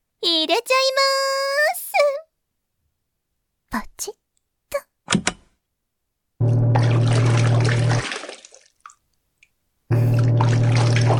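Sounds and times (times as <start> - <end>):
speech: 0.4 - 2.2, 3.7 - 4.2
low mechanical hum: 6.4 - 8.0, 9.9 - 11.1
washing machine filling and churning water: 6.4 - 8.7, 9.9 - 11.1
water trickling: 6.4 - 9.1, 9.9 - 11.1.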